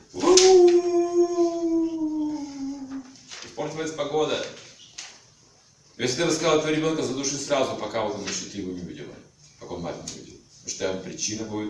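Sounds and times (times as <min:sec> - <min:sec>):
jackal howling: 0:00.1 - 0:03.0
speech: 0:03.8 - 0:04.6, 0:06.0 - 0:10.1, 0:10.8 - 0:11.6.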